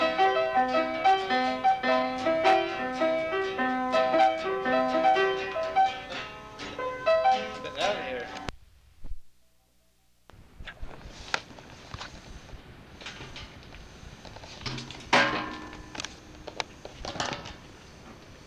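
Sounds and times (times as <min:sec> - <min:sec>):
piano: 0:00.0 - 0:08.5, 0:13.3 - 0:18.4.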